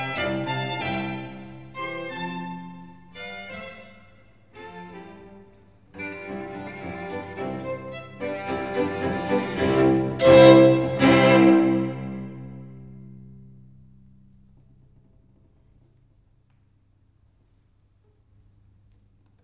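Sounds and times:
string quartet in C: 0.0s - 13.1s.

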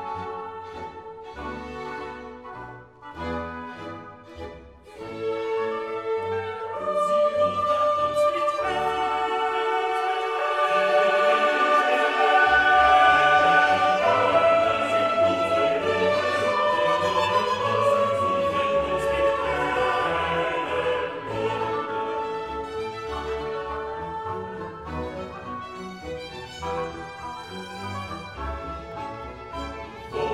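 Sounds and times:
choir singing a cantata: 5.0s - 25.6s, 28.1s - 30.3s.

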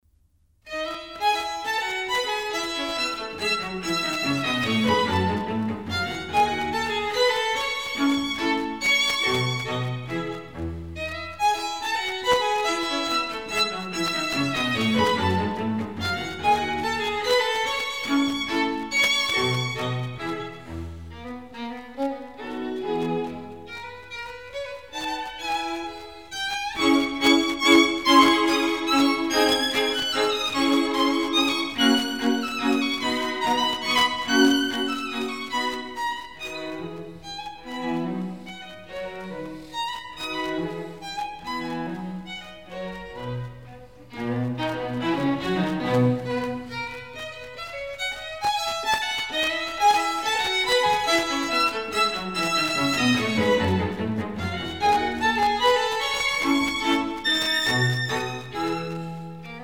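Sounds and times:
string quartet playing: 0.7s - 59.6s.

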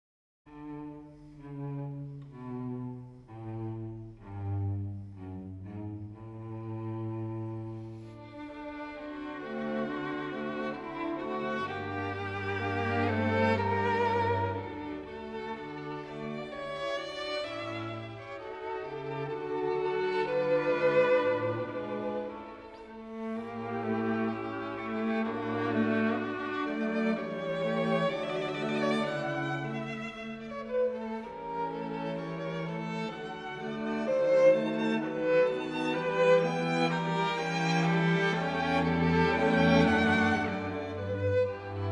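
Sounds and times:
string quartet playing: 0.5s - 41.8s.

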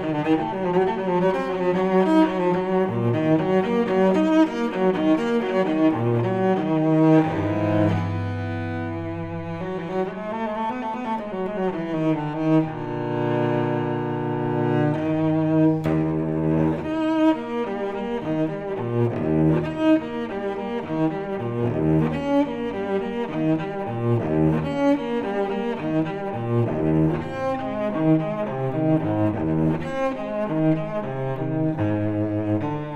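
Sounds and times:
solo cello suite: 0.0s - 32.9s.

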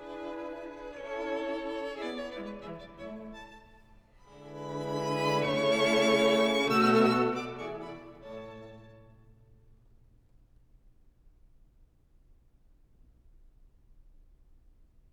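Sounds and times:
string quartet minuet and trio in A major: 0.0s - 9.5s.

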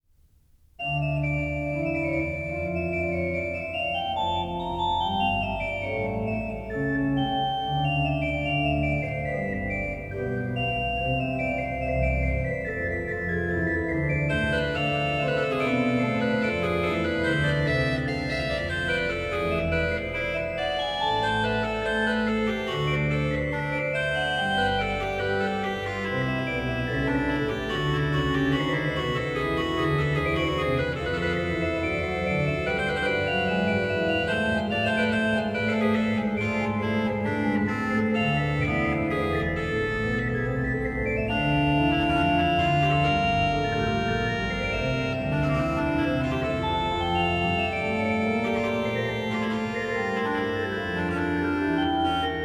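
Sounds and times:
great organ playing a trio sonata andante in D minor: 0.8s - 52.4s.

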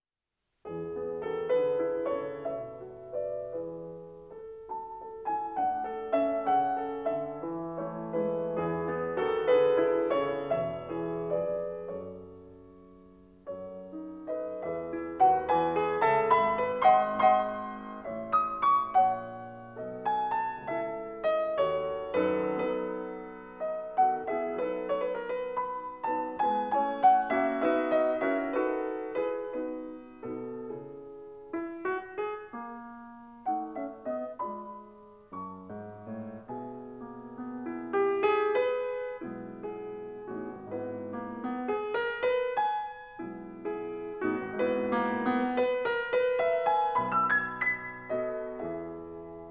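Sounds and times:
classical piano sonata: 0.5s - 49.4s.

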